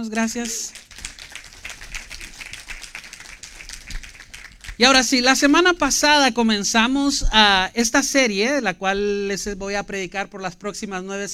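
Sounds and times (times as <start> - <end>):
speech: 0.0 - 0.9, 4.8 - 11.3
audience applause: 0.0 - 6.0.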